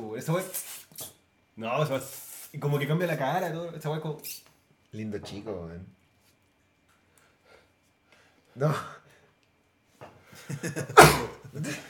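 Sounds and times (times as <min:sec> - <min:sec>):
speech: 0:00.2 - 0:06.0, 0:08.6 - 0:09.0, 0:10.4 - 0:11.8
person sneezing: 0:10.8 - 0:11.8.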